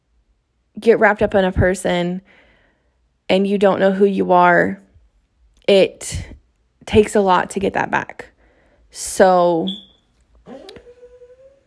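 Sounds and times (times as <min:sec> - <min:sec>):
speech: 0:00.8 - 0:02.4, 0:03.3 - 0:04.8, 0:05.7 - 0:08.3, 0:08.9 - 0:09.9
dog whimpering in its sleep while dreaming: 0:10.4 - 0:11.6.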